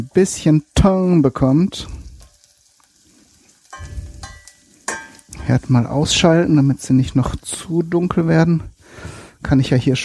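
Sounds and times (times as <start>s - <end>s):
speech: 0.0s - 2.0s, 5.5s - 10.0s
onions frying in a pan: 0.0s - 10.0s.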